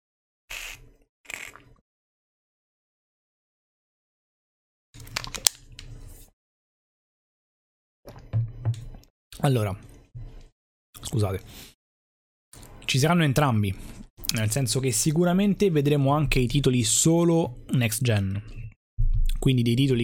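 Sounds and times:
person sipping a drink: 0.5 - 1.8
speech: 9.4 - 9.9, 11.0 - 11.7, 12.9 - 18.6, 19.4 - 20.0.

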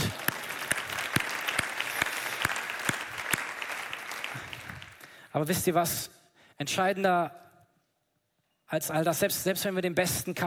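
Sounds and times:
audience applause: 0.0 - 5.2
speech: 5.4 - 7.4, 8.7 - 10.4.

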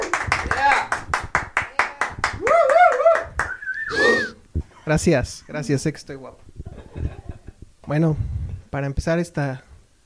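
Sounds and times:
audience applause: 0.0 - 3.6
speech: 4.9 - 6.4, 7.9 - 10.0.

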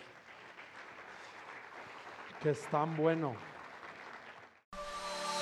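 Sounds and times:
crowd applauding: 0.0 - 4.6
speech: 2.4 - 3.5.

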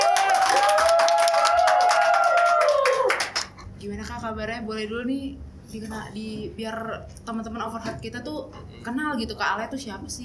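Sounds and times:
audience clapping to welcome a guest: 0.0 - 3.6
speech: 4.3 - 10.2.

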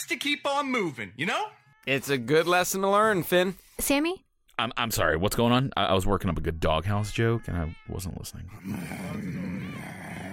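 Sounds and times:
speech: 0.0 - 9.6
person growling like a dog: 8.6 - 10.3.

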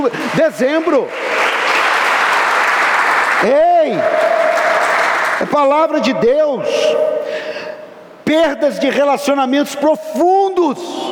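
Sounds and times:
speech: 0.0 - 1.5, 3.4 - 4.4, 5.4 - 7.1, 8.3 - 11.1
audience applause: 0.0 - 5.6.

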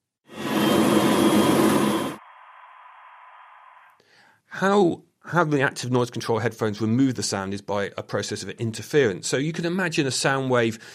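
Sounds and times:
machinery noise: 0.3 - 2.2
speech: 4.6 - 10.9.

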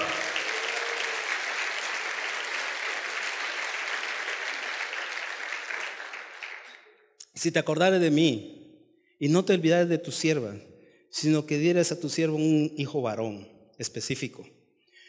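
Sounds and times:
audience applauding: 0.0 - 6.9
speech: 7.4 - 8.6, 9.2 - 14.6.

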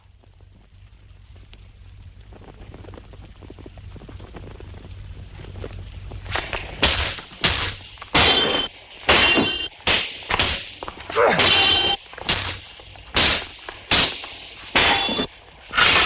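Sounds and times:
steel swords clashing in a duel: 6.8 - 16.0.

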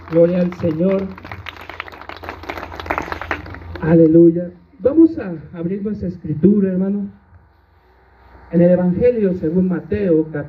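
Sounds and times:
audience applause: 0.0 - 3.9
low hum: 0.0 - 10.4
speech: 0.1 - 1.4, 3.8 - 7.2, 8.5 - 10.4.

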